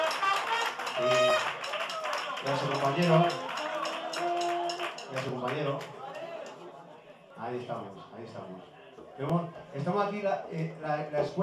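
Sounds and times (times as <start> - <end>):
audience applause: 0.0 - 6.6
speech: 2.4 - 3.5, 5.1 - 6.0, 7.4 - 11.4.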